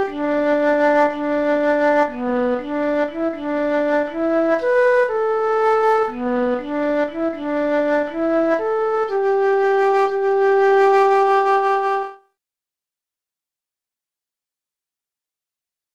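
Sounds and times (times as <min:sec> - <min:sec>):
flute playing G: 0:00.0 - 0:12.2.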